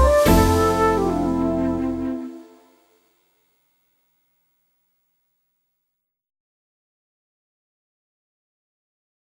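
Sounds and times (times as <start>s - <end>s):
backing music: 0.0s - 3.0s.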